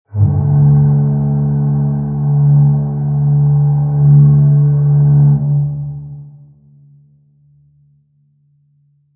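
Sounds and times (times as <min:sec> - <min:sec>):
long fog horn of a large ship: 0:00.1 - 0:06.4.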